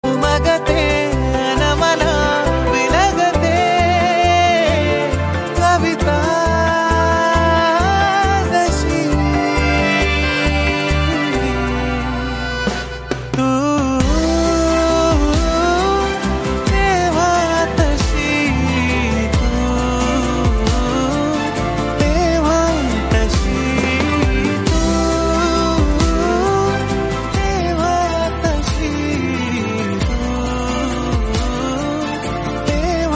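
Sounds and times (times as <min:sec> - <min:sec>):
Marathi TV serial song: 0:00.0 - 0:33.1.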